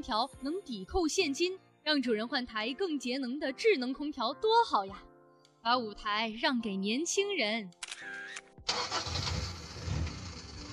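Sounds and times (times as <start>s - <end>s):
speech: 0.0s - 8.8s
old car engine starting: 8.7s - 10.7s.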